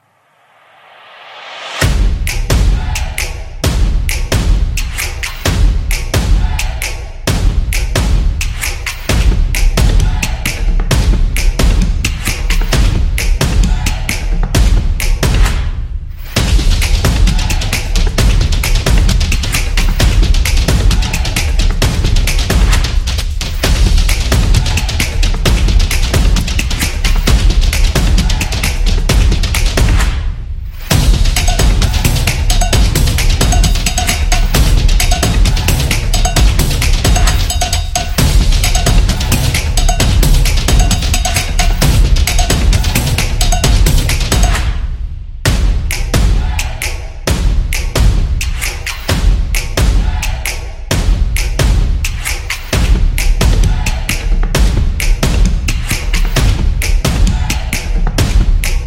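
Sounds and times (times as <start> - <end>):
stomping beat: 1.6 - 58.8.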